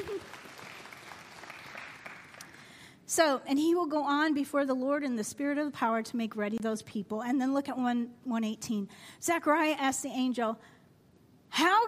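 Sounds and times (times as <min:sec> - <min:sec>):
audience clapping: 0:00.0 - 0:02.7
speech: 0:03.1 - 0:10.8, 0:11.5 - 0:11.8.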